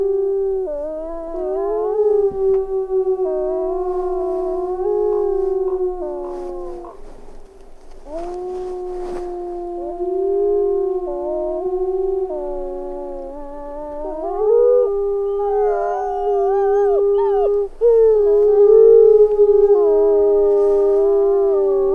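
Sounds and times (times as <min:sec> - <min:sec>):
gray wolves howling: 0:00.0 - 0:07.2, 0:07.9 - 0:21.9.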